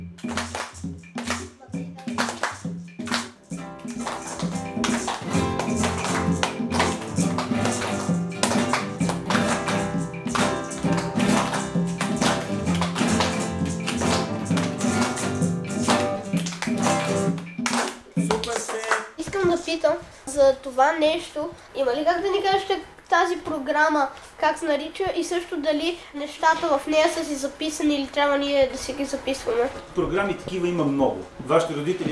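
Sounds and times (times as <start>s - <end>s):
strummed guitar chords: 0.0s - 18.6s
rhythmic hand clapping: 0.0s - 19.8s
speech: 20.8s - 32.0s.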